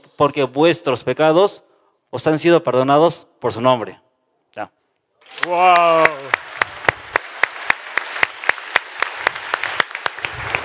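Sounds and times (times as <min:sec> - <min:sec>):
speech: 0:00.2 - 0:06.4
audience applauding: 0:05.2 - 0:10.6.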